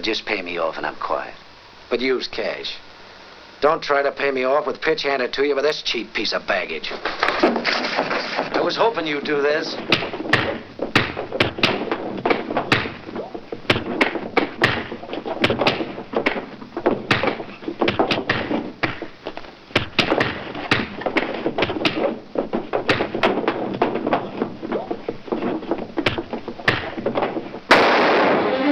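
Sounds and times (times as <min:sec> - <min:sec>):
speech: 0:00.0 - 0:02.9, 0:03.6 - 0:10.6
punches in an audio drama: 0:09.8 - 0:28.6.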